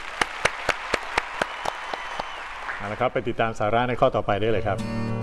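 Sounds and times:
audience clapping hands: 0.0s - 3.5s
speech: 2.8s - 5.1s.

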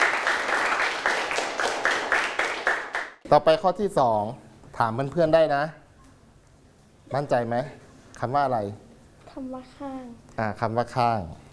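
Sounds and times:
classroom applause: 0.0s - 3.2s
speech: 3.3s - 5.8s, 7.1s - 8.8s, 9.4s - 11.5s.

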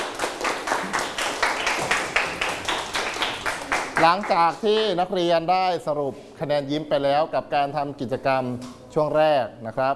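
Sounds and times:
students clapping: 0.0s - 5.0s
speech: 4.0s - 9.9s.

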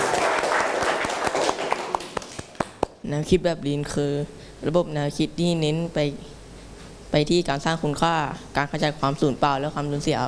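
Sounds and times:
class clapping hands: 0.0s - 3.0s
speech: 3.1s - 6.3s, 7.1s - 10.2s.

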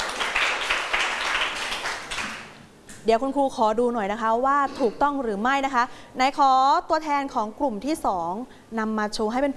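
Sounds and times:
students clapping in a classroom: 0.0s - 2.6s
speech: 3.0s - 9.5s.

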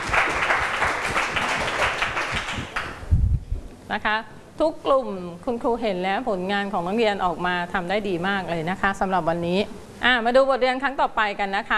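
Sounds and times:
classroom students applauding: 0.0s - 3.0s
speech: 3.9s - 11.7s.

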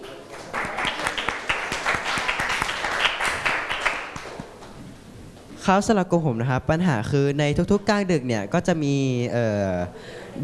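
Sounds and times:
group clapping: 0.0s - 4.8s
speech: 5.6s - 10.4s.

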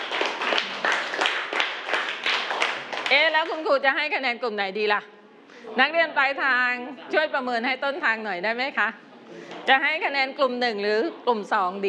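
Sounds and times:
students clapping for a group: 0.0s - 3.6s
speech: 3.1s - 11.8s.

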